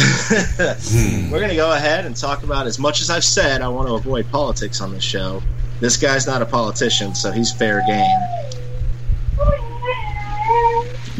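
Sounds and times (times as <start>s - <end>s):
steady low hum: 0.0s - 2.0s
speech: 0.3s - 8.6s
dog whining howl: 6.3s - 11.1s.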